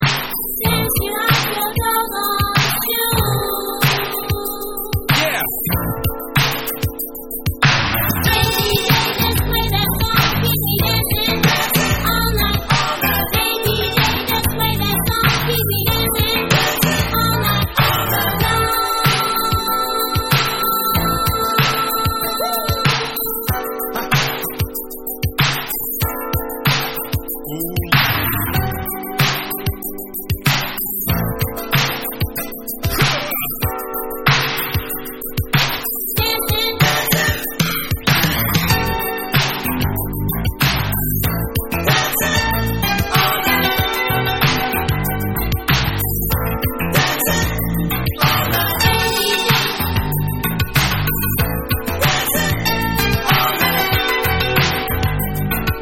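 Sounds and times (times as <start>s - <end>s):
extended instrumental version: 0.0s - 55.8s.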